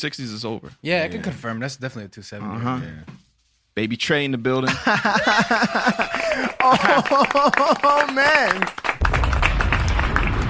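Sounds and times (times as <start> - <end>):
speech: 0.0 - 3.2, 3.8 - 8.8
laughter: 4.7 - 8.6
hand claps: 5.8 - 10.4
steady low rumble: 9.0 - 10.4.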